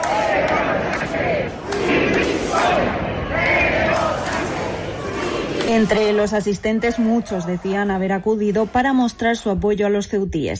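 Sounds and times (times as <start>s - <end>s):
large protest crowd shouting and chanting: 0.0s - 9.7s
speech: 5.8s - 10.5s.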